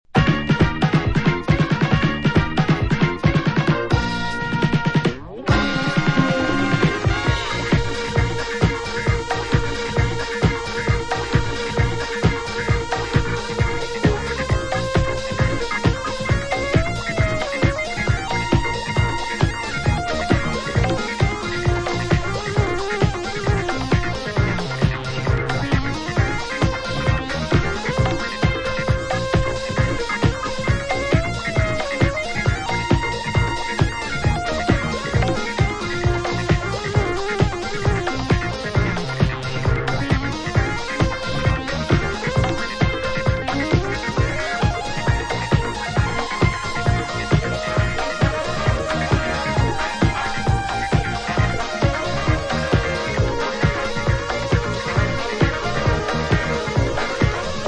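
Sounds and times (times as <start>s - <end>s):
instrumental music: 0.1s - 57.6s.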